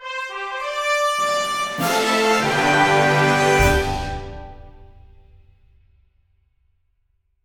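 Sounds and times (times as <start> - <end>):
fanfare: 0.0 - 5.4.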